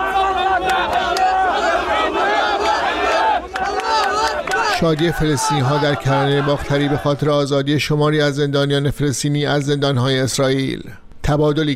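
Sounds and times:
Israelis cheering and shouting the release of hostages held by Hamas: 0.0s - 7.2s
speech: 4.8s - 11.7s.

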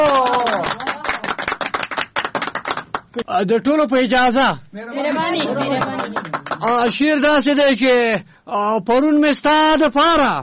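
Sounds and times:
small crowd clapping for a performer called onto the stage: 0.0s - 3.3s, 5.0s - 7.6s
speech: 3.2s - 10.4s.

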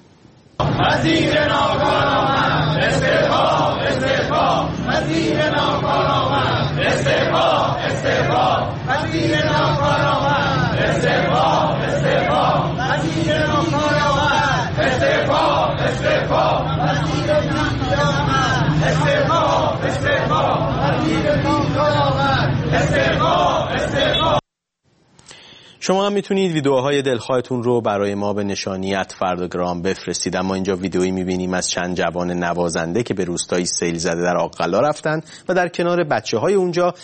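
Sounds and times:
crowd of teachers chanting and shouting outside the Ministry of Education in Tehran: 0.6s - 24.4s
speech: 1.0s - 5.3s, 25.9s - 37.0s.

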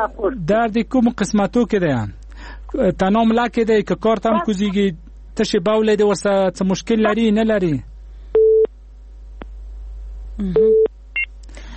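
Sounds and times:
speech: 0.0s - 7.9s, 10.4s - 10.9s
telephone busy signal after a dropped call: 8.4s - 8.7s, 10.6s - 11.3s.

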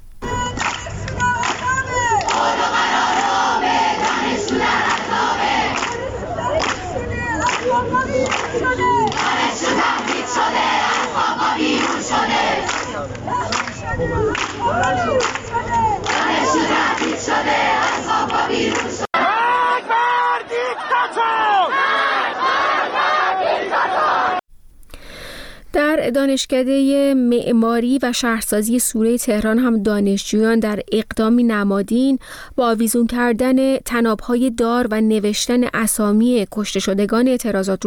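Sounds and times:
Allameh university students chanting at a protest: 0.2s - 24.4s
speech: 26.1s - 37.8s.

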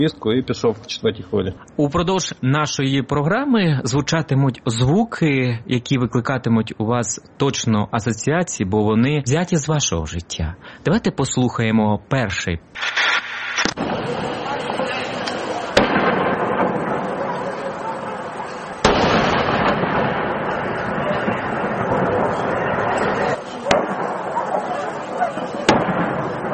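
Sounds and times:
speech: 0.0s - 13.0s
people: 0.0s - 26.5s
artillery shelling: 12.8s - 26.5s
anxious dogs barking: 24.1s - 25.8s.

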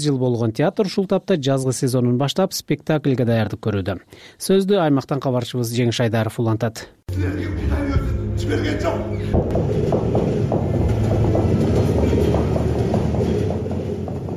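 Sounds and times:
speech: 0.0s - 10.8s
sustained tonal layer: 7.1s - 14.3s
trains rumbling on railway tracks: 7.5s - 14.3s
train wheels clacking over rail joints: 9.5s - 14.3s.

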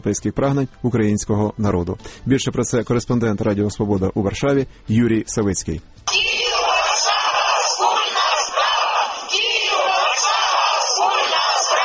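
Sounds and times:
speech: 0.0s - 6.2s
large crowd at a street march chanting slogans in unison: 6.1s - 11.8s.

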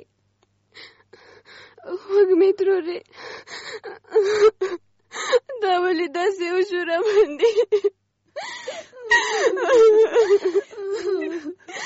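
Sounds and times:
speech: 2.1s - 3.2s, 6.0s - 8.0s
person crying and sobbing: 3.4s - 5.6s, 7.0s - 11.8s.

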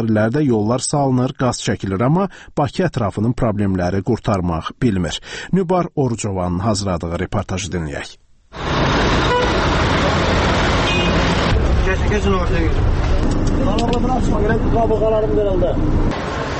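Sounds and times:
speech: 0.0s - 10.4s, 12.0s - 16.5s
crowded city bus on route 60 in Binə, Baku rumbling: 8.5s - 16.5s
steady traffic noise: 8.5s - 16.5s
car horns tooting: 8.8s - 11.6s.

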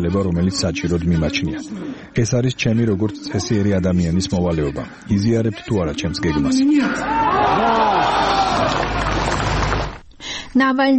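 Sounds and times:
speech: 0.0s - 9.4s, 10.6s - 10.9s
crowd shouting enthusiastically in response to Alexei Navalny's question: 6.8s - 9.5s.

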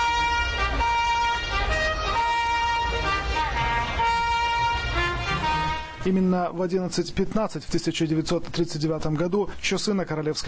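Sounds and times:
trumpet call from tower: 0.0s - 6.2s
street traffic rumble: 0.0s - 6.3s
faint crowd voices: 0.1s - 6.2s
speech: 6.0s - 10.4s.

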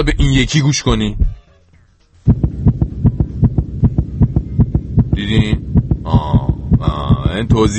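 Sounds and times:
speech: 0.0s - 1.3s, 7.4s - 7.7s
faster human heartbeat: 2.3s - 7.7s.

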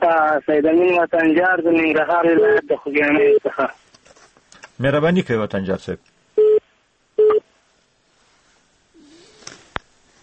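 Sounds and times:
speech: 0.1s - 3.8s, 4.8s - 6.1s
telephone busy tone after a caller's line was cut off: 6.4s - 6.6s, 7.2s - 7.4s.

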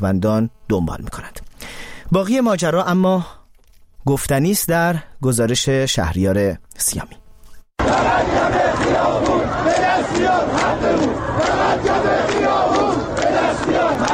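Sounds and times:
speech: 0.0s - 3.4s, 4.0s - 7.2s
crowd of protesters chanting slogans: 7.8s - 14.1s.

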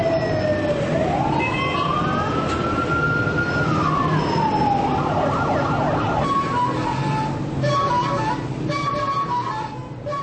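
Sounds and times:
busy city street noise: 0.0s - 10.2s
siren: 0.0s - 10.2s.

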